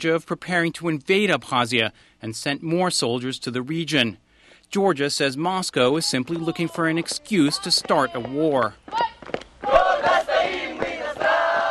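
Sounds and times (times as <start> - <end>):
speech: 0.0 - 9.4
school children in fatigue singing a patriotic song during marching drills in Suhumi: 7.5 - 11.6.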